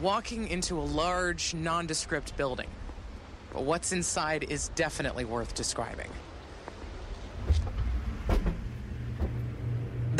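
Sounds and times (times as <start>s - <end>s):
speech: 0.0s - 2.9s, 3.6s - 6.3s
environmental growth chamber humming: 7.2s - 10.1s.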